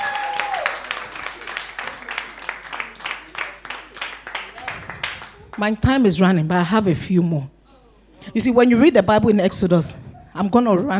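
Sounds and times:
audience clapping: 0:00.0 - 0:05.7
speech: 0:05.6 - 0:07.6, 0:08.3 - 0:10.9.

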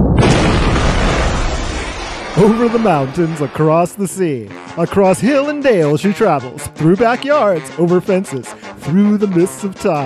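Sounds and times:
explosion sound effect: 0:00.0 - 0:04.2
speech: 0:02.4 - 0:10.0.

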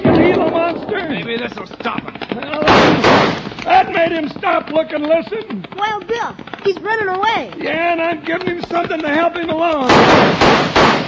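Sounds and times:
gunshot: 0:00.0 - 0:01.4, 0:02.6 - 0:03.6, 0:09.8 - 0:11.0
speech: 0:01.1 - 0:11.0.

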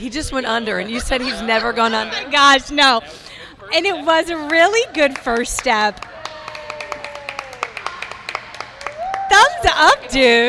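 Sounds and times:
speech: 0:00.0 - 0:06.1, 0:09.3 - 0:10.4
audience applause: 0:04.5 - 0:09.9.

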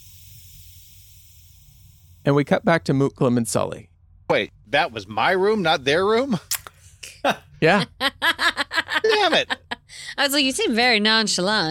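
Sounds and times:
gas hissing filling a room: 0:00.0 - 0:02.4
speech: 0:02.2 - 0:11.6
laughter: 0:07.1 - 0:09.9.

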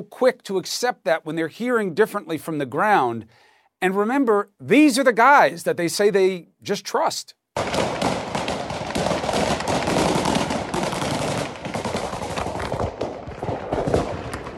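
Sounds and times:
speech: 0:00.0 - 0:07.9
rapid bursts of gunfire: 0:07.6 - 0:14.5.

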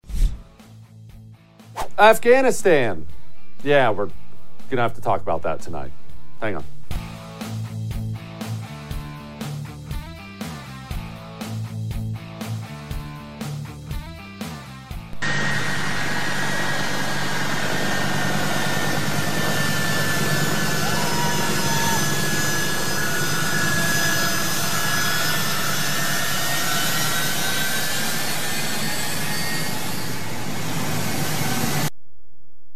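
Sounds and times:
American C-17 military transport jet taking off from Kabul airport: 0:01.8 - 0:06.9, 0:15.2 - 0:31.9
rhythmic musical opening: 0:01.8 - 0:14.7
speech: 0:02.0 - 0:06.8.

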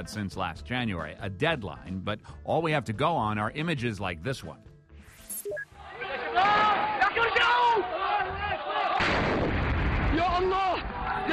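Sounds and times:
speech: 0:00.0 - 0:04.7
protest crowd shouting and chanting: 0:05.7 - 0:09.1, 0:10.7 - 0:11.3
heavy booming blasts and rumbling bursts: 0:09.0 - 0:11.1.

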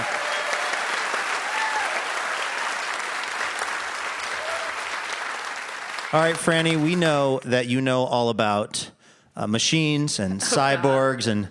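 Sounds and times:
audience clapping: 0:00.0 - 0:07.8
speech: 0:06.1 - 0:11.4.

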